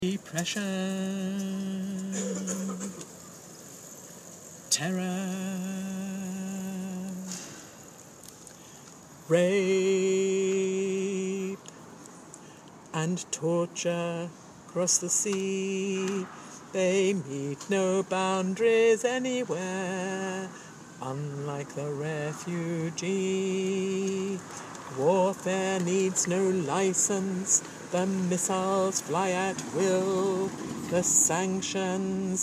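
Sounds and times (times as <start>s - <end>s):
tenor singing: 0.0s - 3.1s, 4.7s - 7.8s, 9.2s - 11.7s, 12.9s - 32.4s.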